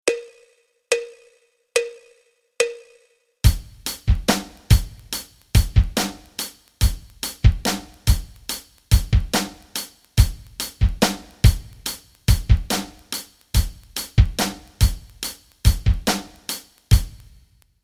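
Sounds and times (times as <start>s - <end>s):
rock rhythms: 3.4s - 17.4s.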